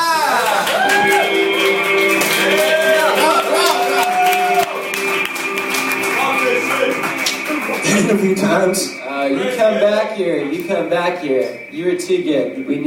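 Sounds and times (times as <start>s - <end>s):
crowd whoops and cheers: 0.0s - 8.6s
loud audience applause: 0.0s - 9.0s
speech: 8.3s - 9.0s, 10.1s - 12.8s.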